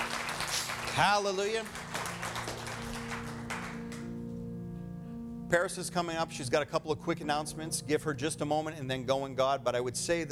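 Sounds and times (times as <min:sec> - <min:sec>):
audience clapping hands: 0:00.0 - 0:04.1
speech: 0:01.0 - 0:01.8, 0:05.5 - 0:10.2.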